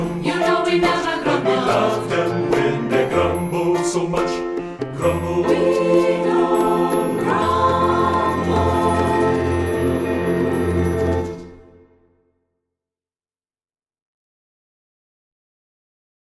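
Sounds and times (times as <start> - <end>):
SATB four-part choir singing: 0.0 - 12.0.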